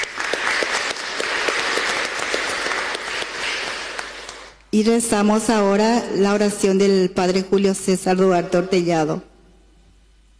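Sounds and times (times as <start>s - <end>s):
audience applause: 0.0s - 4.6s
speech: 4.7s - 9.3s.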